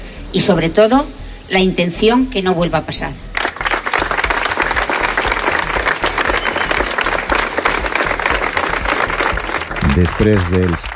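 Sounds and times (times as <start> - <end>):
speech: 0.3 - 3.3, 10.0 - 10.9
prolonged ovation at commemorative ceremony: 3.3 - 10.9.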